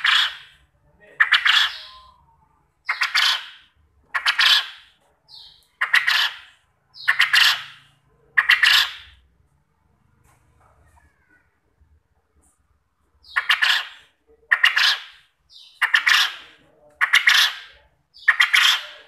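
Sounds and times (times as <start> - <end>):
quail calling with soft chirps and loud harsh bursts as a lure: 0.0 - 9.3, 13.2 - 19.0.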